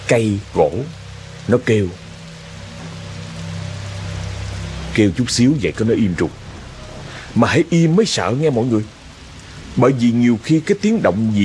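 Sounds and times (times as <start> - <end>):
low constant hum: 0.0 - 11.4
rain falling: 0.0 - 11.4
speech: 0.1 - 2.0, 5.0 - 6.4, 7.4 - 9.0, 9.8 - 11.4.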